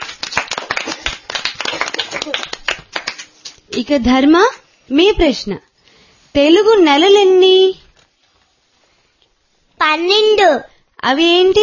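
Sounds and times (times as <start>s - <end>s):
audience clapping for a young girl: 0.0s - 3.6s
speech: 3.8s - 5.7s, 6.3s - 7.8s, 9.8s - 11.6s.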